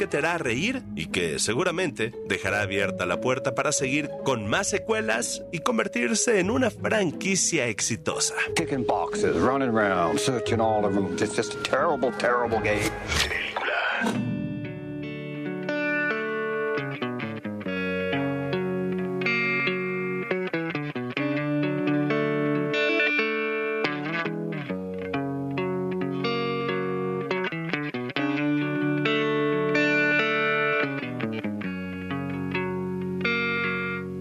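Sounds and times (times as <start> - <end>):
speech: 0.0 - 14.2
rock song from a film soundtrack: 14.0 - 34.1.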